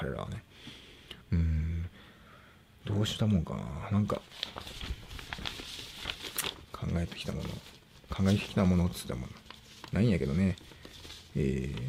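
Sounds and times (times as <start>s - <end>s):
speech: 3.0s - 4.7s, 7.0s - 10.8s, 11.4s - 11.8s
paper crinkling: 4.1s - 11.8s.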